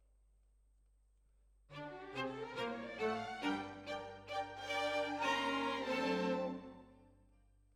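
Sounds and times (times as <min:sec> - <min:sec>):
violins: 0:01.7 - 0:07.1.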